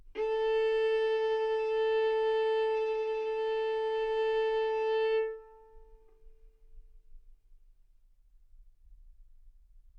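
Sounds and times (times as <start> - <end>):
violin bowed arco notes: 0.0 - 6.4.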